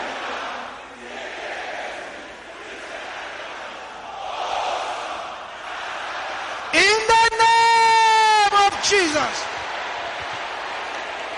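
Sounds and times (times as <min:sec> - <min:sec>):
large group of men shouting a prayer: 0:06.6 - 0:09.4
speech: 0:08.9 - 0:09.5.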